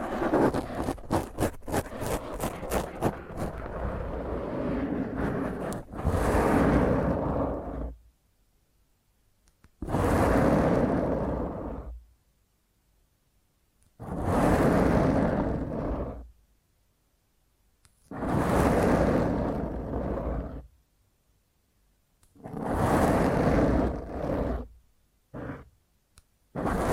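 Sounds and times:
fingernails scratching hard against a microphone: 0.0 - 8.0, 9.8 - 12.0, 14.0 - 16.3, 18.0 - 20.7, 22.4 - 25.7, 26.6 - 26.9.

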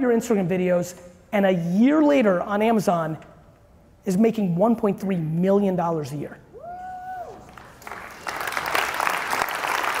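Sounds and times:
speech: 0.0 - 3.3, 4.0 - 6.4
audience applause: 7.4 - 9.9.

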